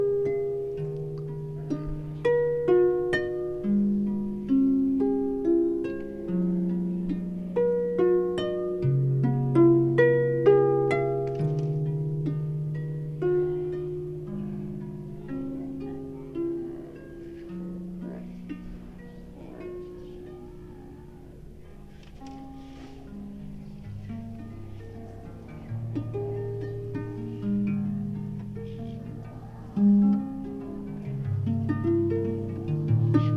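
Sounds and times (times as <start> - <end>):
harp playing outdoors: 0.0 - 33.3
background crowd chatter: 0.8 - 33.3.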